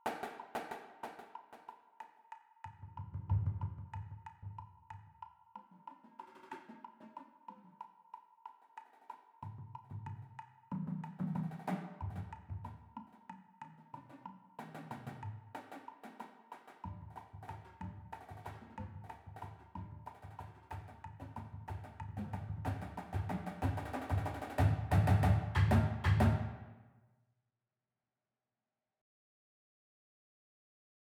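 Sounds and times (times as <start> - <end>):
marching battery cymbal percussion: 0.0 - 4.4, 8.6 - 26.7.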